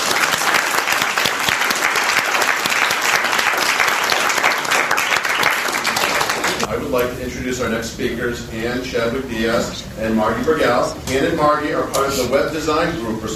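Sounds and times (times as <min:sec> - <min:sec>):
audience applause: 0:00.0 - 0:06.7
speech: 0:06.9 - 0:13.3.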